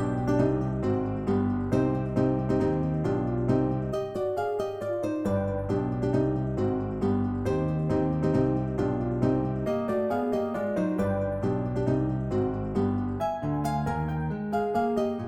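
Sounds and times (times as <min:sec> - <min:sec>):
relaxing elevator march music: 0:00.0 - 0:15.2.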